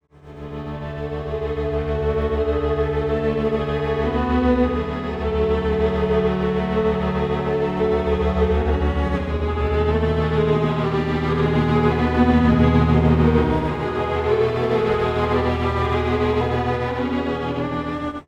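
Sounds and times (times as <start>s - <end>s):
time-stretched strings: 0.3s - 18.2s.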